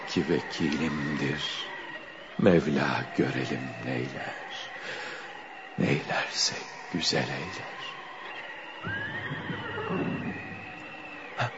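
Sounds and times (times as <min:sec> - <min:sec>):
speech: 0:00.1 - 0:01.8, 0:02.4 - 0:05.0, 0:05.8 - 0:08.0, 0:08.8 - 0:09.5
white horse whinnying arriving in a storm: 0:08.9 - 0:10.8.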